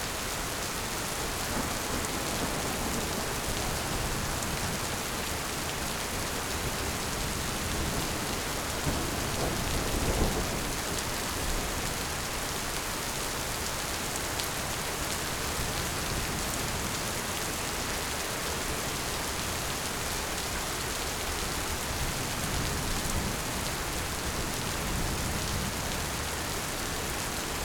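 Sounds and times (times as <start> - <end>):
heavy rain in a thunderstorm: 0.0 - 27.6
thunder in a thunderstorm: 1.1 - 5.3, 7.2 - 11.9.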